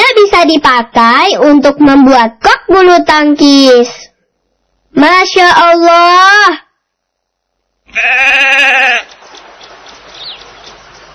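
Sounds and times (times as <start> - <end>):
speech: 0.4 - 4.1, 4.9 - 6.6, 7.9 - 9.1
sheep bleating: 7.9 - 9.2.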